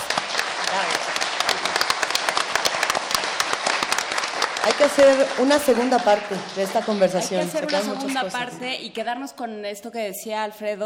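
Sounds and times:
crowd applauding: 0:00.0 - 0:08.6
speech: 0:04.7 - 0:10.8.

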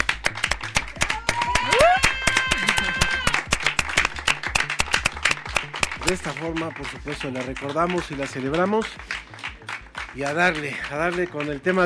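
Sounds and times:
audience applause: 0:00.0 - 0:11.8
speech: 0:06.0 - 0:09.3, 0:10.2 - 0:11.8.

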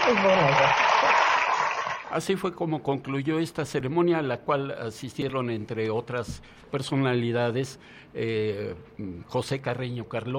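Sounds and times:
audience applause: 0:00.0 - 0:02.2
speech: 0:00.1 - 0:01.3, 0:02.1 - 0:10.3.

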